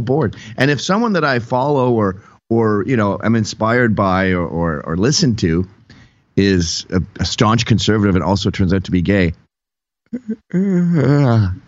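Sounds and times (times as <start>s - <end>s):
speech: 0.0s - 5.8s, 6.4s - 9.4s, 10.1s - 11.6s
person giving a long voiced yawn: 10.1s - 11.6s.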